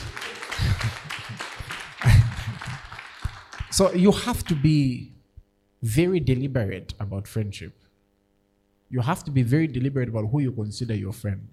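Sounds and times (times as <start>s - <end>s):
laughter: 0.0s - 3.7s
audience clapping: 0.0s - 5.0s
speech: 3.8s - 5.2s, 5.8s - 7.8s, 8.9s - 11.5s.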